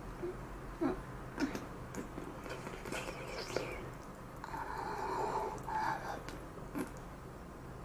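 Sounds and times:
young woman's erotic voice: 0.2s - 6.9s
slurping sounds during oral sex: 1.4s - 7.0s.

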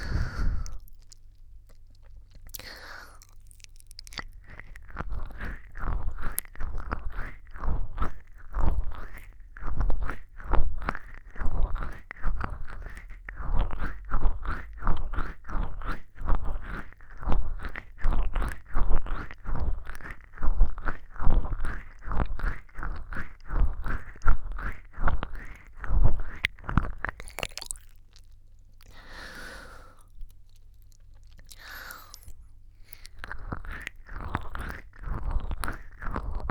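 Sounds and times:
tongue rubbing: 4.3s - 27.5s, 31.4s - 36.4s.

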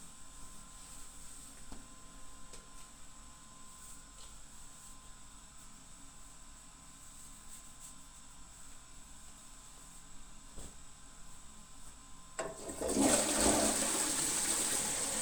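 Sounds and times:
urinating in an office toilet: 12.4s - 15.2s.

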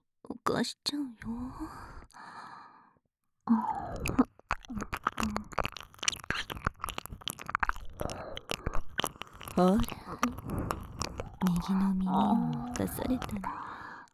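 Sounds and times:
speech: 0.5s - 1.9s, 9.6s - 10.6s, 11.6s - 13.6s
soft breathy exhale: 1.5s - 2.9s, 10.3s - 11.4s, 12.6s - 14.1s
ASMR wet ear-licking mouth sounds: 3.6s - 14.1s.

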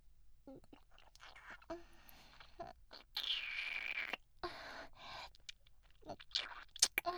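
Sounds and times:
teasing ear licking: 0.7s - 4.3s, 5.1s - 7.1s.

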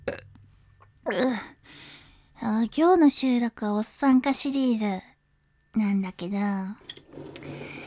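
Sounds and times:
person drinking beer: 0.1s - 0.5s
speech: 1.1s - 1.5s, 2.6s - 5.1s, 5.8s - 6.9s.

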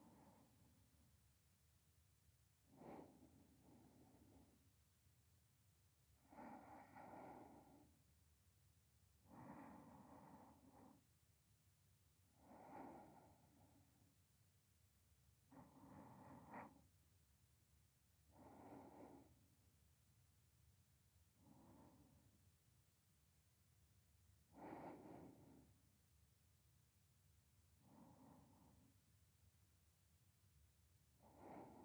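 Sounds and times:
sleeping breath voice beside the listener: 0.0s - 0.8s, 2.7s - 4.6s, 6.2s - 8.0s, 9.2s - 11.0s, 12.4s - 14.0s, 15.5s - 16.8s, 18.3s - 19.4s, 21.4s - 22.4s, 24.5s - 25.8s, 27.8s - 29.0s, 31.2s - 31.8s.

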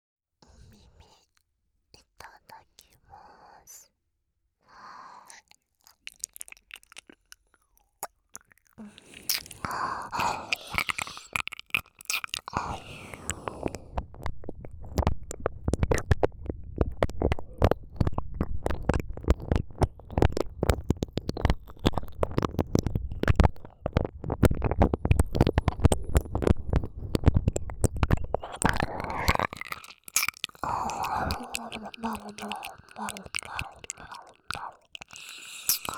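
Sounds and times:
ASMR ear licking sounds: 5.3s - 35.9s.

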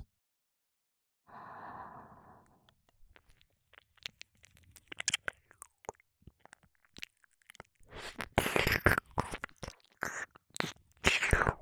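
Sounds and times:
ear licking sounds: 2.7s - 11.6s.

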